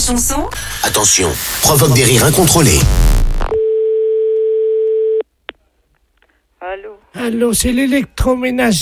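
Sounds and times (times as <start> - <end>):
speech: 0.1 - 3.2, 7.2 - 8.8
telephone tone after a call is hung up: 3.6 - 5.2.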